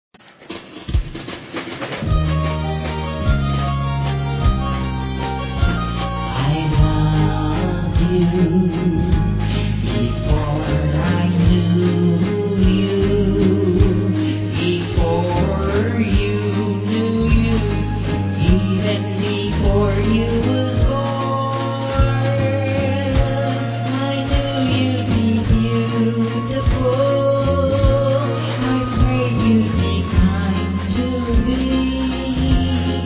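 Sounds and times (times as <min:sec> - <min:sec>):
waltz music: 0:02.1 - 0:33.0.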